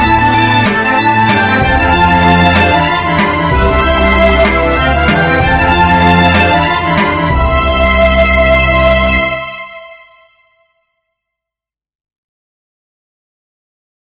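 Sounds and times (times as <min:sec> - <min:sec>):
orchestral music: 0:00.0 - 0:10.6.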